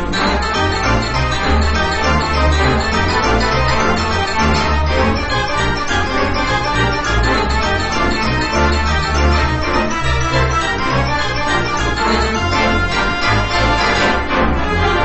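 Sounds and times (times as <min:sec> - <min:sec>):
organ boogie: 0:00.2 - 0:14.8.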